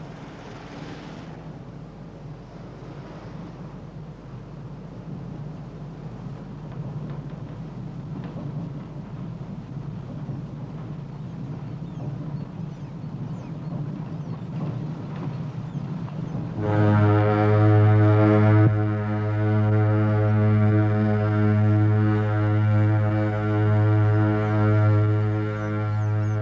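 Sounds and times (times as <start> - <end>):
steamship engine churning rumble departing from the pier: 0.0 - 26.4
loud deep buzzing steamship horn: 16.6 - 26.4.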